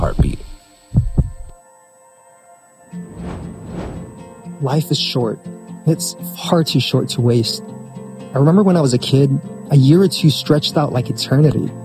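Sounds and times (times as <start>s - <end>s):
speech: 0.0s - 0.5s, 4.6s - 7.8s, 8.4s - 11.8s
heartbeat sound effect: 1.0s - 1.5s.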